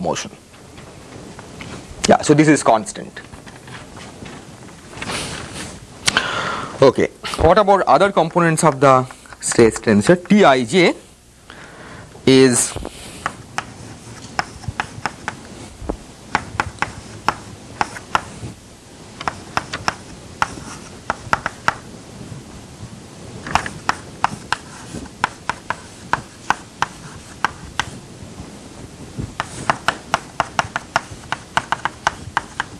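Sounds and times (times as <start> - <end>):
speech: 0.0 - 0.6, 2.1 - 3.4, 6.8 - 11.0, 12.3 - 12.9
equations written out by hand: 12.9 - 15.5, 16.3 - 18.4, 19.2 - 21.8, 23.5 - 28.0, 29.3 - 32.7.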